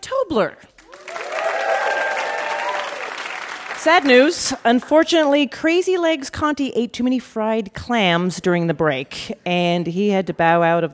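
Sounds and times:
speech: 0.3s - 0.7s, 3.8s - 10.9s
audience applause at a puzzle game show: 0.9s - 4.3s.

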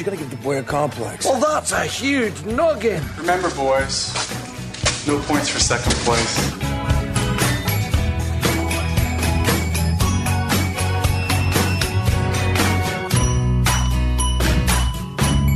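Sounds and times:
speech: 0.0s - 4.4s, 5.0s - 6.8s
wake-up bell ringing: 7.5s - 15.5s.

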